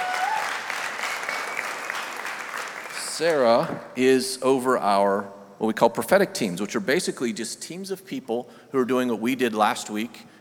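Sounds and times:
audience applause: 0.0 - 3.6
speech: 3.2 - 10.3.

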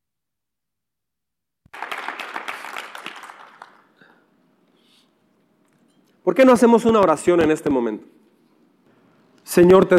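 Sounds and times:
audience applause: 1.7 - 4.0
speech: 6.3 - 8.2, 9.6 - 9.9.

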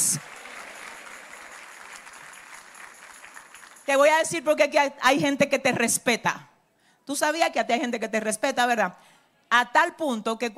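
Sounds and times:
audience applauding: 0.0 - 3.9
speech: 3.9 - 6.5, 7.1 - 10.5.

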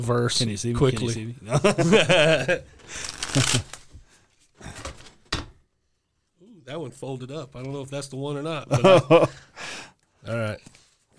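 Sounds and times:
speech: 0.0 - 3.8, 6.7 - 9.4, 10.2 - 11.1
laughter: 1.5 - 2.8, 8.7 - 9.4
deck of Bible verse cards being shuffled: 2.8 - 4.0.

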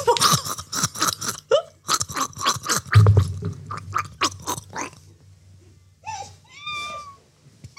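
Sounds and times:
person gargling water while singing: 0.2 - 5.1.

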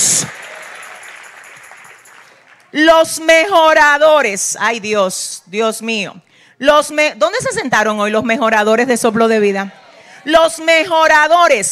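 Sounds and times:
audience applause: 0.0 - 2.8
speech: 2.7 - 11.7.

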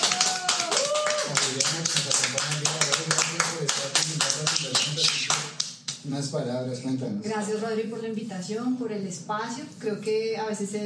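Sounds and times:
audience cheering: 0.0 - 1.7
audience applause welcoming a guest to a show: 0.0 - 5.6
speech: 6.3 - 10.8.

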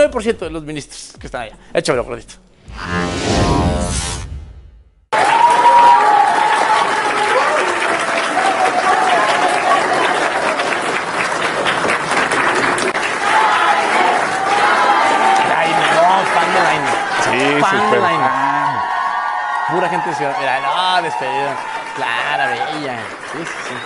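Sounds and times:
speech: 0.1 - 4.1, 19.8 - 23.8
applause: 5.1 - 23.8.

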